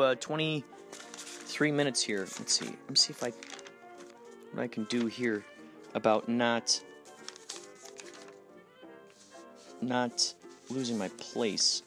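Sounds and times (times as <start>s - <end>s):
speech: 0.0s - 3.6s, 4.5s - 6.9s, 9.8s - 11.8s
papers rustling and shuffling through notes: 0.8s - 6.2s, 7.0s - 11.8s.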